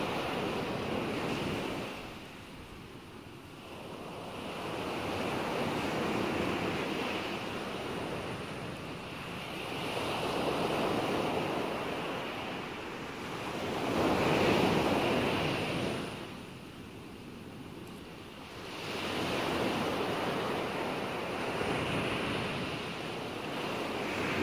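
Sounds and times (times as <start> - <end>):
calming sea ocean waves: 0.0 - 24.4.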